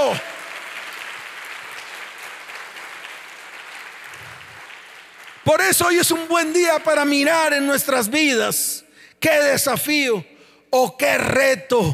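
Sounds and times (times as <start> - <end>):
audience applauding: 0.0 - 7.0
speech: 0.1 - 0.3, 5.5 - 11.9.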